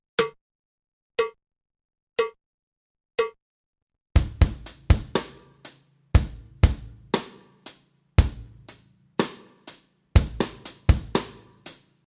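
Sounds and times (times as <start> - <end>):
drum kit practice: 4.2 - 12.0.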